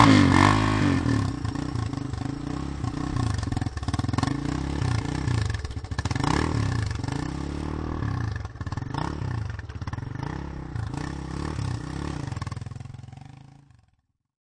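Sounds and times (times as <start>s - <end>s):
dirt bike revving: 0.0s - 13.8s.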